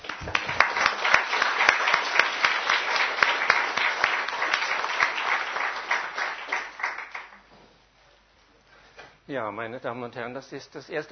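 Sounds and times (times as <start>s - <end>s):
audience applause: 0.0s - 7.5s
speech: 9.3s - 11.1s.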